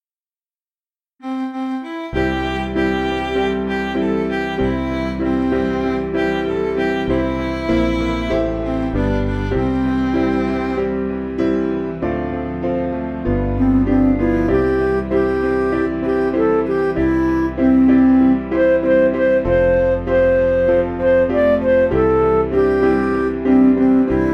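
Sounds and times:
MIDI music: 0:01.2 - 0:24.3.

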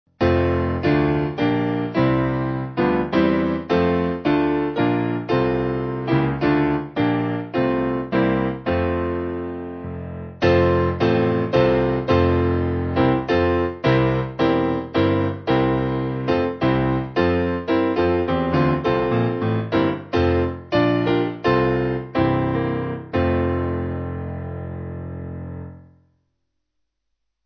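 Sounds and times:
piano: 0:00.0 - 0:26.0.

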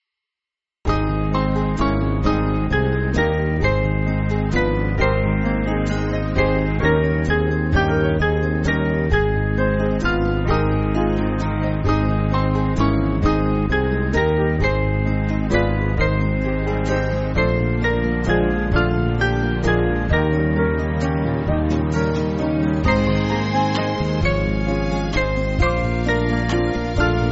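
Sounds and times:
band backing music for churches: 0:00.9 - 0:27.3.

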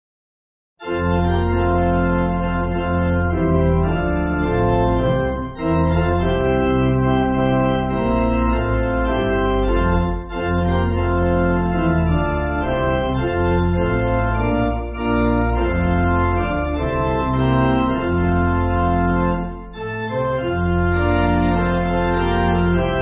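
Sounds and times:
church pipe organ backing music: 0:00.8 - 0:22.9.

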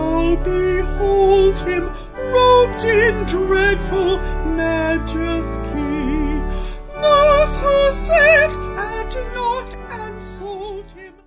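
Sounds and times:
organ-like vocals with sung lyrics: 0:00.0 - 0:11.2.

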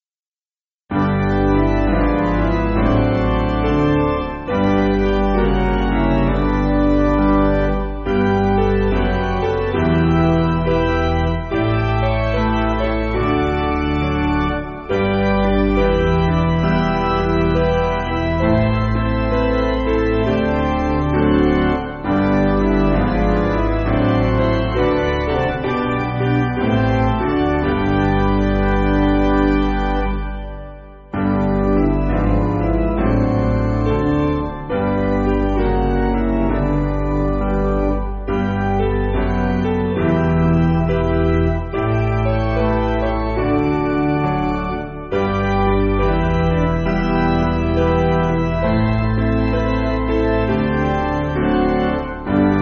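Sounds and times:
piano backing music for churches: 0:00.9 - 0:52.5.

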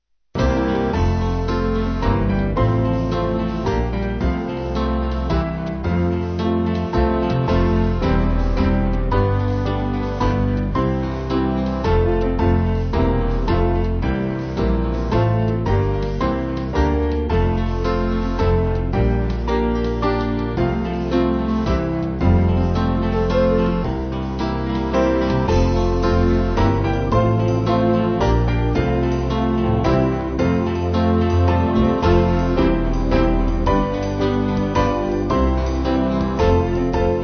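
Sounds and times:
band backing music: 0:00.4 - 0:37.2.

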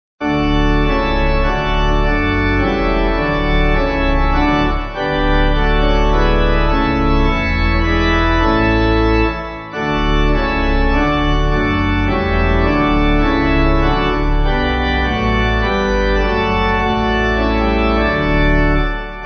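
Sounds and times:
pipe organ backing: 0:00.2 - 0:19.2.

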